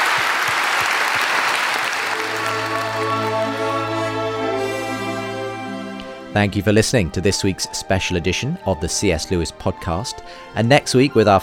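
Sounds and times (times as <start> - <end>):
audience applause: 0.0 - 5.3
speech: 6.4 - 11.4.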